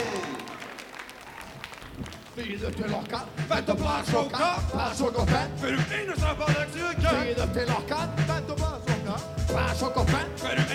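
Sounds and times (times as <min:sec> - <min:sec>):
person whooping: 0:00.0 - 0:00.8
audience applause: 0:00.0 - 0:03.2
speech: 0:02.4 - 0:10.7.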